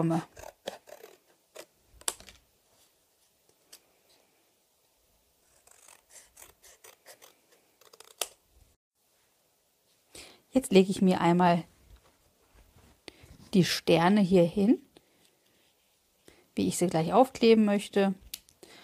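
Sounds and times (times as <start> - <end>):
speech: 0.0 - 0.5, 10.6 - 11.7, 13.5 - 14.8, 16.6 - 18.2
scissors cutting out a handmade Christmas card: 5.5 - 8.4.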